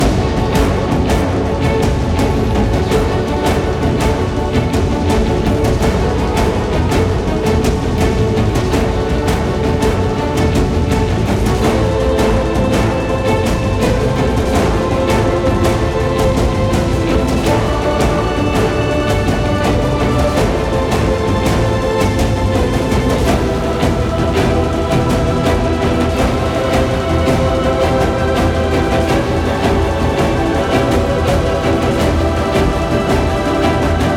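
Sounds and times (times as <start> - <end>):
tense music loop: 0.0 - 34.1.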